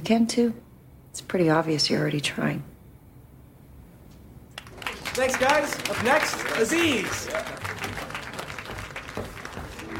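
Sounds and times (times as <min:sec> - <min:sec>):
speech: 0:00.0 - 0:00.6, 0:01.2 - 0:02.7, 0:05.2 - 0:07.6
tepid audience applause as a comedian takes the stage: 0:04.6 - 0:09.9.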